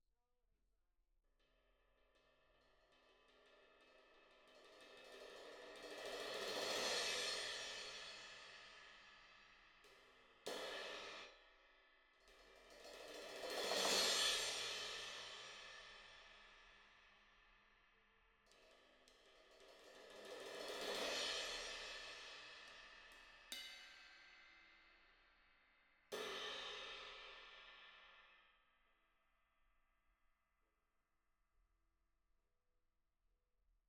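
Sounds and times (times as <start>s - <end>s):
cymbal: 2.4s - 17.3s, 18.5s - 28.5s.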